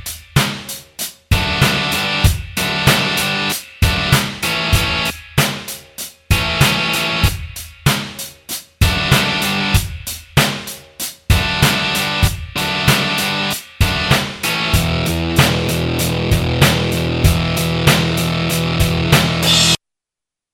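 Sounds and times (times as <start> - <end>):
backing track: 1.3 - 5.6, 6.3 - 8.2, 8.8 - 10.5, 11.3 - 19.8.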